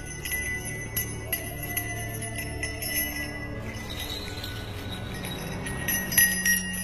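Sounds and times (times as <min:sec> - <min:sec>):
old priest's handbell ringing: 0:00.0 - 0:06.8.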